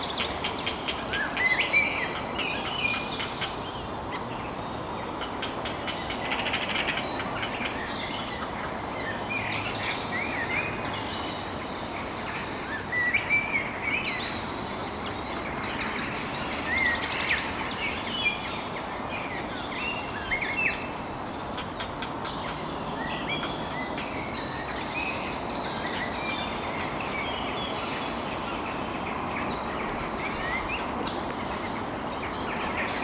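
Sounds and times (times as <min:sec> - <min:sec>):
dense dusk birdsong from the trees: 0:00.0 - 0:33.0.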